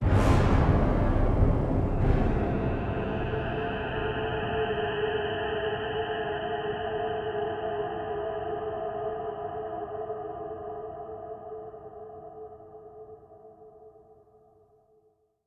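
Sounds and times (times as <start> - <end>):
scary music stinger: 0.0 - 8.4.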